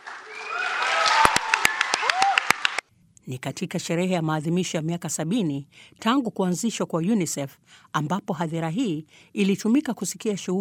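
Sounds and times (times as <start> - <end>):
audience applause after a karate display at a UNICEF 70th-anniversary celebration: 0.0 - 2.8
speech: 3.3 - 10.5.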